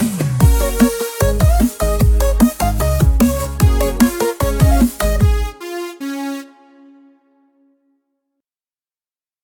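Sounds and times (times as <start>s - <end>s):
karaoke song: 0.0s - 6.6s.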